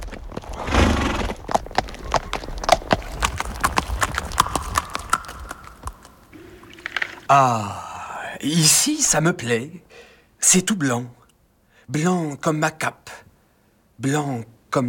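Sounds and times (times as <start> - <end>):
horse hooves clip-clopping: 0.0 - 7.2
speech: 7.3 - 7.8, 8.4 - 11.2, 11.9 - 13.2, 14.0 - 14.8.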